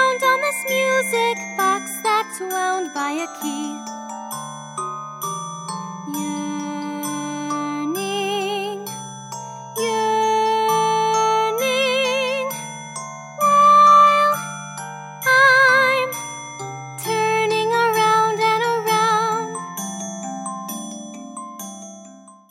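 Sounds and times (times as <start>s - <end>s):
person singing audition vocals: 0.0s - 3.9s, 6.1s - 8.9s, 9.8s - 12.6s, 13.4s - 14.5s, 15.3s - 16.2s, 17.0s - 19.6s.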